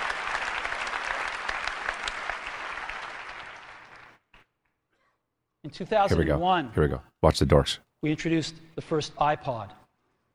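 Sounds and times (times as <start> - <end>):
audience clapping in recorded keynote: 0.0 - 4.5
speech: 5.6 - 9.8.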